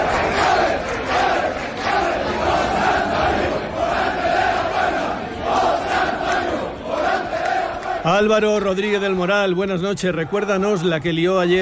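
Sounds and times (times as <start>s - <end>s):
crowd chanting in the streets of Seville: 0.0s - 8.7s
large crowd cheering in the streets of Seville: 0.0s - 11.5s
speech: 8.1s - 11.6s.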